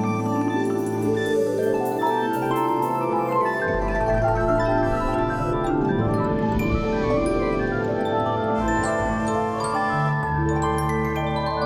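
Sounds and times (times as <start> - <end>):
orchestra tuning up: 0.1 - 11.5.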